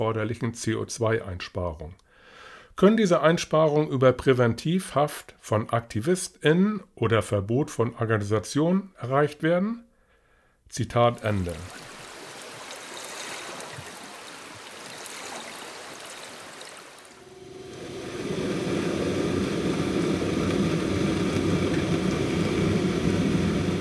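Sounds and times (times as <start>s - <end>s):
speech: 0.0s - 2.0s, 2.8s - 9.9s, 10.7s - 11.9s
ship noise recorded underwater: 17.0s - 23.7s.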